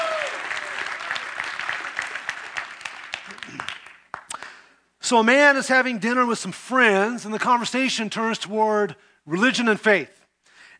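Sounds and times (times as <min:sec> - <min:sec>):
audience applause: 0:00.0 - 0:04.3
speech: 0:05.1 - 0:10.2.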